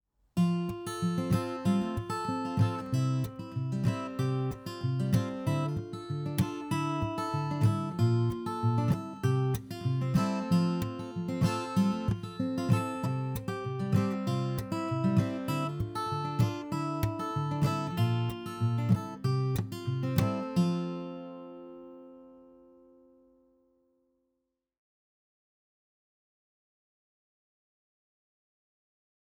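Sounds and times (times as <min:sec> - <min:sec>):
fingerstyle guitar: 0:00.4 - 0:23.6.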